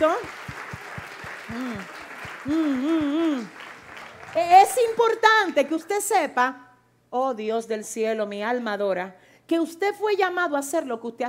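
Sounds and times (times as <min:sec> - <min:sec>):
group clapping in rhythm: 0:00.0 - 0:05.9
speech: 0:01.5 - 0:03.6, 0:04.4 - 0:11.2.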